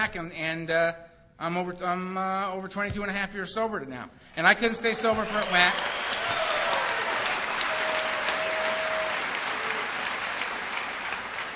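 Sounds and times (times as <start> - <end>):
speech: 0.0 - 6.0
audience applause: 5.0 - 11.5.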